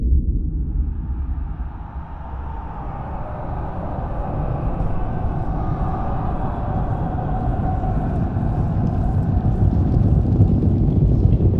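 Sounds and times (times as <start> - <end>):
scream with reverb effect: 0.1 - 11.4.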